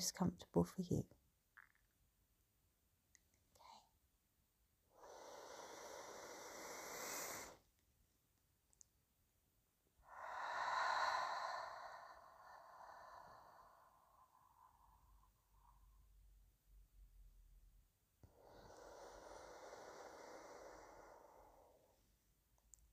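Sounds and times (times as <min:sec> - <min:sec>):
speech: 0:00.0 - 0:01.2
slow meditation breathing in through the nose or mouth: 0:04.9 - 0:07.7, 0:10.0 - 0:16.4, 0:18.2 - 0:22.2.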